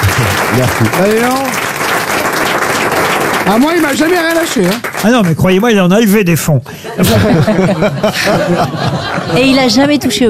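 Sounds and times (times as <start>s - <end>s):
laughter: 0.0s - 1.0s, 6.7s - 10.2s
audience applause: 0.0s - 5.8s
speech: 0.6s - 1.6s, 3.5s - 10.2s.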